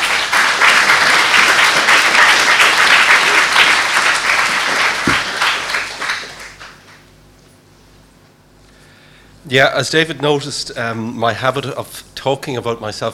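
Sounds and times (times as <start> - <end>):
crowd applause: 0.0 - 7.0
speech: 9.5 - 13.1.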